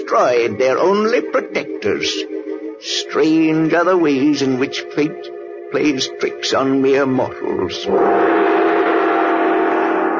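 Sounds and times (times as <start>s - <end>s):
speech: 0.1s - 8.4s
great gong ringing: 7.8s - 10.1s.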